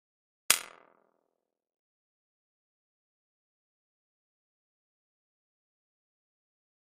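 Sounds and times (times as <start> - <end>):
button toy drum hit: 0.5 - 0.9.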